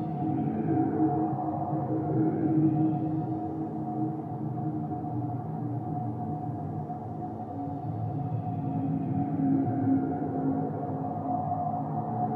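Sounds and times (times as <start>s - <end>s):
ghostly ambience: 0.0s - 12.3s.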